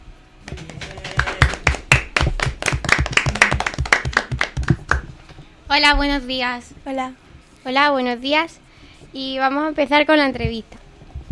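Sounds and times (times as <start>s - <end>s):
audience applause: 0.4s - 5.1s
speech: 5.7s - 8.6s, 9.2s - 10.8s.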